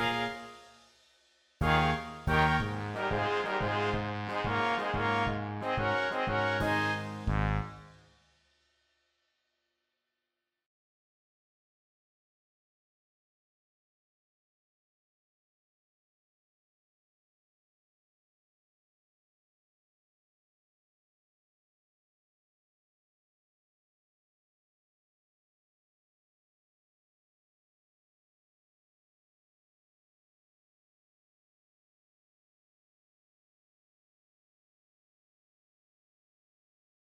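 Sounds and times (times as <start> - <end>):
kids band MIDI music: 0.0 - 0.6, 1.6 - 7.9.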